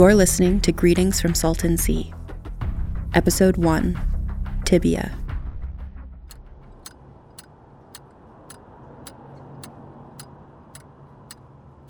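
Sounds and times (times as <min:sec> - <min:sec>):
speech: 0:00.0 - 0:02.2, 0:03.1 - 0:04.1, 0:04.7 - 0:05.2
metronome ticking: 0:06.3 - 0:11.8.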